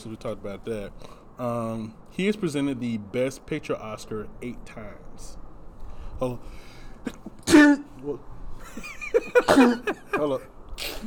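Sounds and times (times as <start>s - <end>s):
speech: 0.0s - 5.4s, 6.2s - 11.0s
sneeze: 7.1s - 7.8s, 10.8s - 11.0s
laughter: 8.6s - 10.5s.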